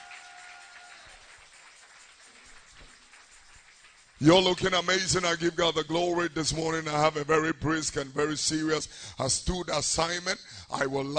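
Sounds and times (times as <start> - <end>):
audience applause: 0.0 - 4.8
speech: 4.2 - 11.1.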